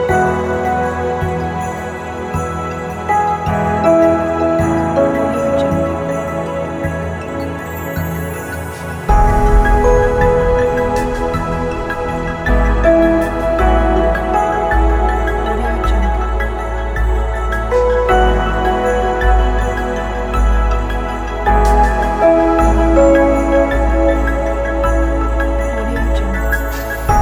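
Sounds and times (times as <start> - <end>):
documentary soundscape piano: 0.0 - 27.2.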